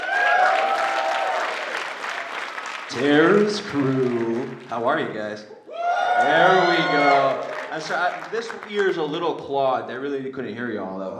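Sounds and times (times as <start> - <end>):
audience applause: 0.0 - 4.8, 6.0 - 9.5
speech: 2.9 - 5.6, 6.2 - 11.1.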